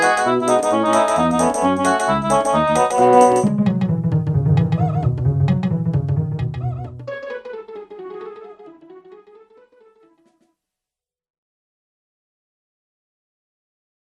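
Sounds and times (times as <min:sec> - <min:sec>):
march music: 0:00.0 - 0:09.5.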